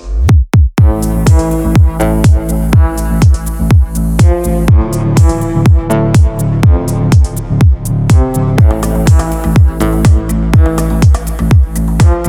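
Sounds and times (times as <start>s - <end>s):
ambient melodic techno music: 0.0s - 12.2s.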